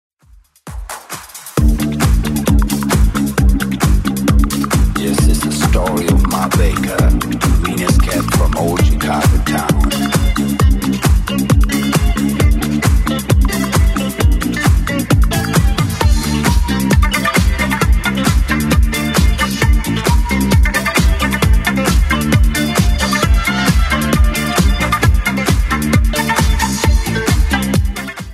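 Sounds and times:
70s club music at 133 bpm: 0:00.6 - 0:28.3.

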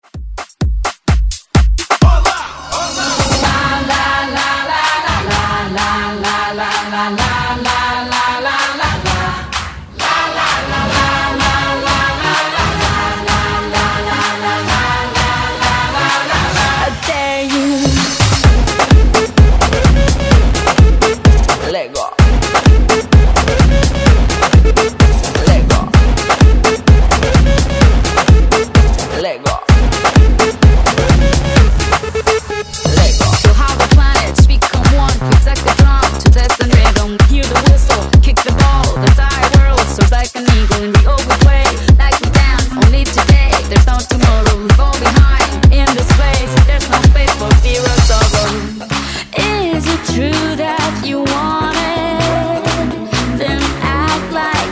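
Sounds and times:
afrobeat music: 0:00.0 - 0:54.7.

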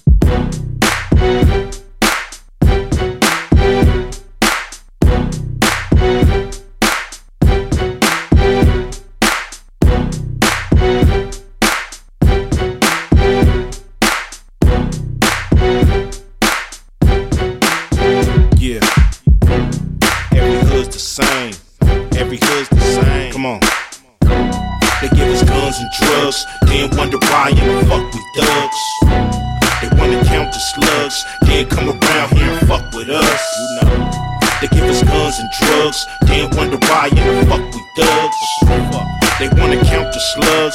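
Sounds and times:
old school music at 100 BPM: 0:00.1 - 0:40.7.

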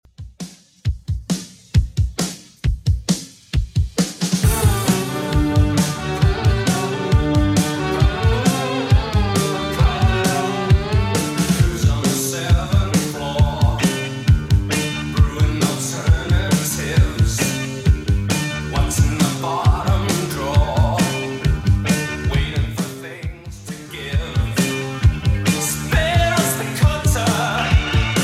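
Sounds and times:
80s-style music at 134 bpm: 0:00.0 - 0:28.2.

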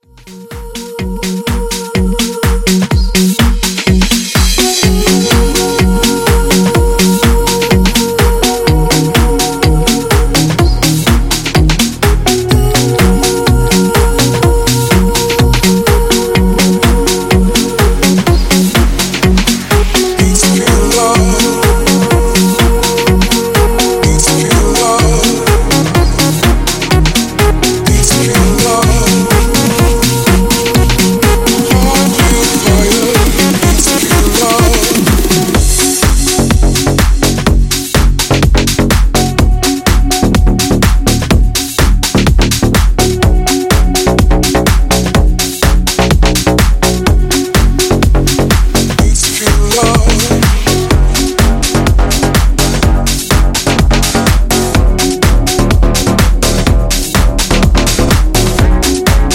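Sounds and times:
clean extended house music: 0:00.0 - 0:59.3.

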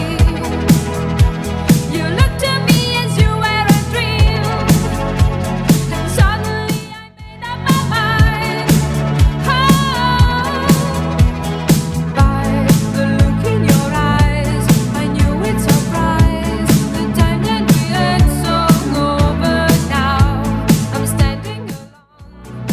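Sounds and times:
80s simple drum machine beat at 120bpm: 0:00.0 - 0:07.0, 0:07.7 - 0:21.9.

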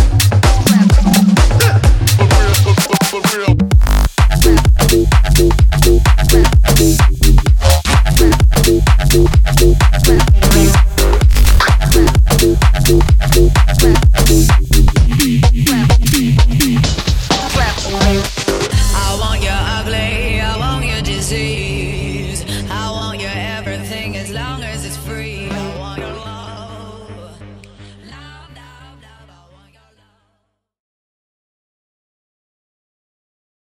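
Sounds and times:
bass house banger at 126 BPM: 0:00.0 - 0:29.3.

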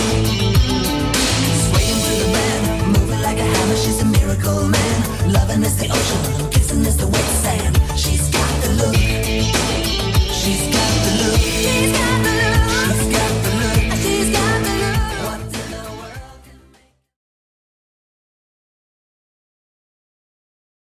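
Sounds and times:
80s Redrum drum machine beat at 100 bpm: 0:00.0 - 0:16.3.

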